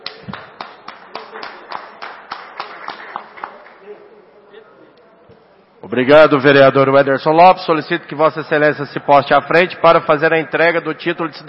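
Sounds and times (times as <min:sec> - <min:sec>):
round of applause: 0:00.0 - 0:03.8
faint murmur: 0:03.4 - 0:05.9
speech: 0:05.9 - 0:11.4.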